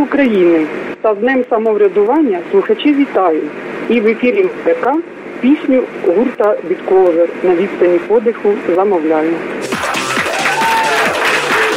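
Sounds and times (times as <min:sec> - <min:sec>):
speech: 0:00.0 - 0:09.8
audience applause: 0:09.6 - 0:11.7.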